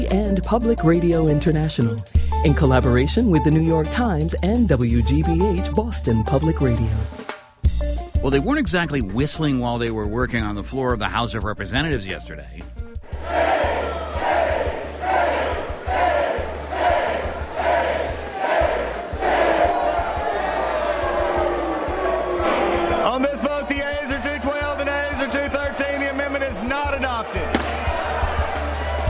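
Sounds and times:
speech: 0:00.0 - 0:07.2, 0:08.2 - 0:13.5
lawmakers booing and hissing in House chamber: 0:13.0 - 0:29.0.

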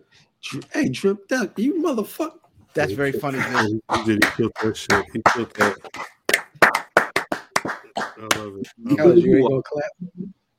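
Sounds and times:
speech: 0:00.1 - 0:06.2, 0:08.0 - 0:10.4
man talking and laughing: 0:02.8 - 0:06.3, 0:08.0 - 0:09.6
hand clapping: 0:03.4 - 0:08.8.

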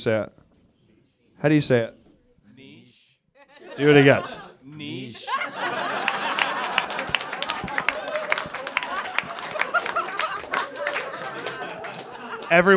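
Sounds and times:
speech: 0:00.0 - 0:00.4, 0:01.4 - 0:02.0, 0:03.8 - 0:06.2, 0:12.5 - 0:12.7
chuckles and murmured voices: 0:01.8 - 0:12.7
audience applause: 0:03.6 - 0:12.7.

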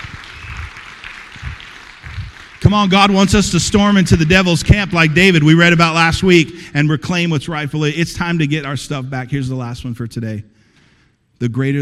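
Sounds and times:
crowd applauding: 0:00.0 - 0:06.6
speech: 0:02.7 - 0:10.6, 0:11.4 - 0:11.8.

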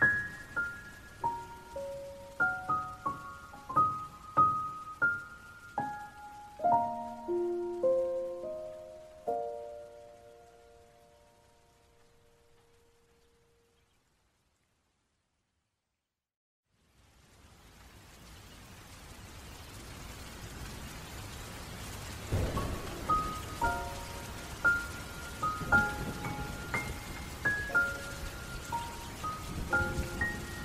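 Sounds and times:
slow sad piano notes: 0:00.0 - 0:12.9, 0:22.3 - 0:30.6
soft rain: 0:00.0 - 0:30.6.

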